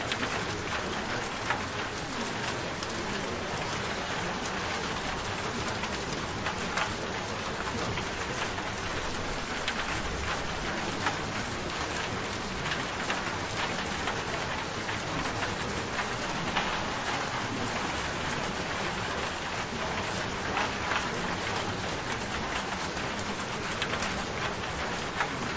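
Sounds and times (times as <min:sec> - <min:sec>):
rain: 0:00.0 - 0:25.5.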